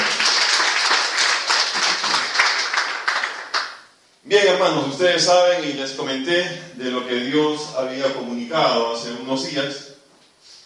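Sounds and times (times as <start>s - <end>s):
audience clapping: 0.0s - 3.9s
speech: 4.4s - 9.8s.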